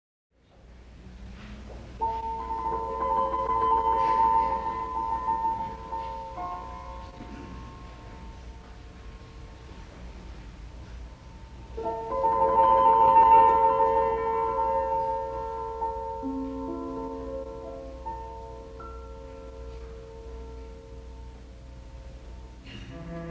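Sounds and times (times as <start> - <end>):
musical piece: 2.0 - 23.2.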